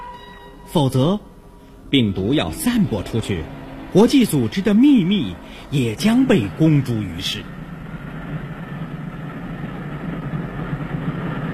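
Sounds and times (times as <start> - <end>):
train running on rails: 0.0 - 11.5
speech: 0.7 - 1.3, 1.9 - 7.6.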